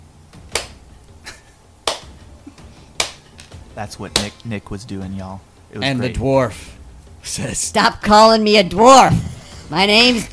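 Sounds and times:
slow clap: 0.5s - 0.8s, 1.8s - 2.2s, 3.0s - 4.4s
speech: 3.8s - 10.3s.

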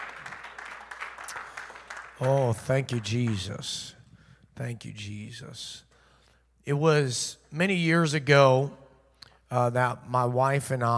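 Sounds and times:
audience hand clap of praise: 0.0s - 3.9s
speech: 2.2s - 4.0s, 4.6s - 5.9s, 6.6s - 8.8s, 9.5s - 10.9s.

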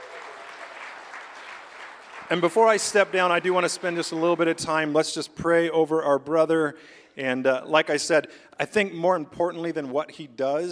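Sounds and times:
audience applause: 0.0s - 4.6s
speech: 2.3s - 10.7s.

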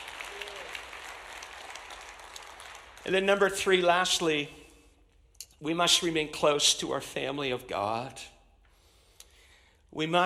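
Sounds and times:
audience clapping: 0.0s - 3.8s
speech: 3.0s - 4.6s, 5.6s - 8.4s, 10.0s - 10.2s.

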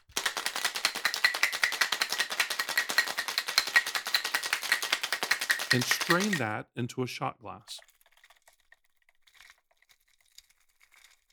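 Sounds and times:
cocktail shaker being shaken: 0.0s - 6.6s
speech: 5.7s - 7.9s.

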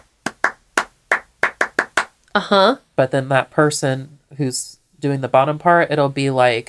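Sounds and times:
rhythmic hand claps: 0.0s - 2.2s
speech: 2.4s - 6.6s.

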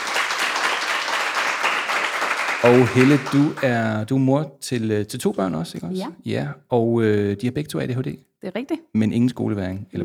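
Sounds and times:
audience applause welcoming a guest: 0.0s - 3.8s
speech: 2.6s - 10.0s.

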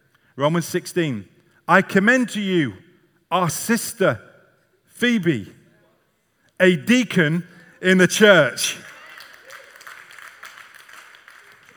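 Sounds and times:
speech: 0.4s - 4.3s, 5.0s - 5.6s, 6.6s - 8.9s
light scattered clapping: 8.8s - 11.7s.

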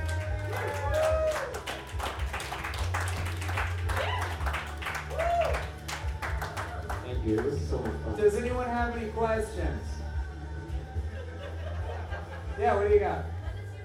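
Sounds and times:
audience cheers and whoops: 0.0s - 1.9s, 3.9s - 5.8s
audience applause: 0.0s - 8.0s
speech: 7.3s - 10.0s, 12.6s - 13.3s
laughter: 11.0s - 13.8s.

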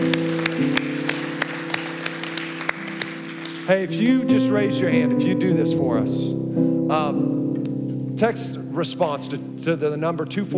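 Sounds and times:
audience applause: 0.0s - 4.0s
speech: 3.7s - 7.4s, 8.2s - 10.5s.

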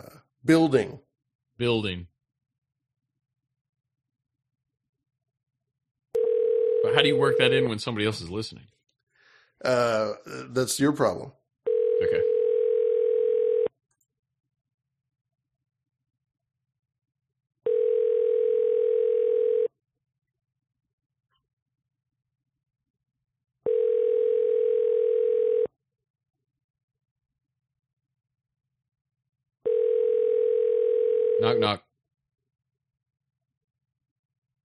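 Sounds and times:
speech: 0.4s - 1.0s, 1.6s - 2.1s, 6.9s - 8.7s, 9.6s - 11.4s
phone line ringing while waiting for pickup: 6.2s - 7.7s, 11.7s - 13.7s, 17.6s - 19.7s, 23.6s - 25.7s, 29.6s - 31.7s.

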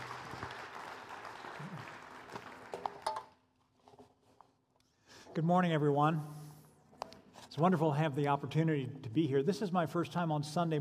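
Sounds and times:
Sunday-morning church congregation applauding a guest speaker: 0.0s - 3.4s
speech: 5.4s - 6.4s, 7.6s - 10.7s.

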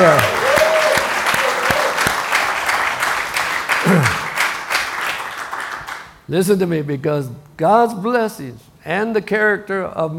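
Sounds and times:
audience applauding: 0.0s - 6.2s
brief vocal sounds: 3.8s - 4.3s
speech: 6.3s - 10.1s.

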